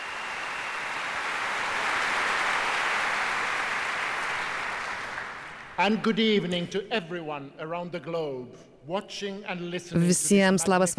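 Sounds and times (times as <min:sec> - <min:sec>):
audience applause in a concert hall: 0:00.0 - 0:06.0
speech: 0:05.8 - 0:10.9.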